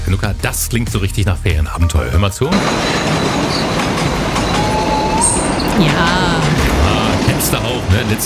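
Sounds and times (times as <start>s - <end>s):
speech: 0.2s - 4.2s, 5.4s - 8.2s
old train rattling over the rails: 2.5s - 8.2s
thin metallic train wheel squeal: 2.6s - 6.3s.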